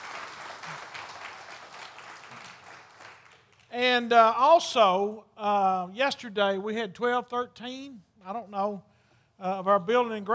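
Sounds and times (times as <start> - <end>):
crowd applauding: 0.0 - 3.7
speech: 3.8 - 10.3.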